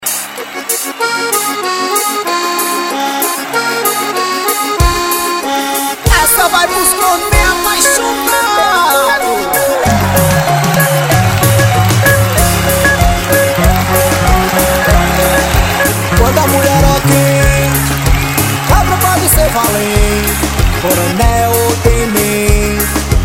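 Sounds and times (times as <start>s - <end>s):
forró music: 0.0s - 23.2s.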